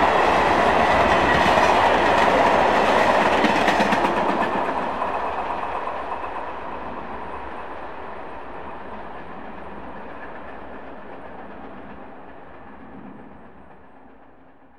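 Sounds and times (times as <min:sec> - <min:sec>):
subway train interior: 0:00.0 - 0:14.7.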